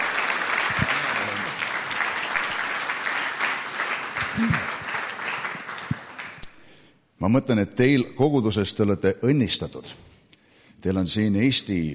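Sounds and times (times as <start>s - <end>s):
audience applause: 0.0s - 6.5s
speech: 4.4s - 4.6s, 7.2s - 10.1s, 10.8s - 11.9s.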